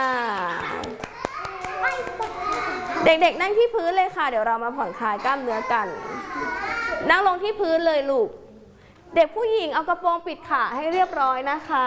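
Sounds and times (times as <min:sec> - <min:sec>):
children clapping their hands: 0:00.0 - 0:03.0
speech: 0:03.0 - 0:08.4, 0:09.1 - 0:11.8.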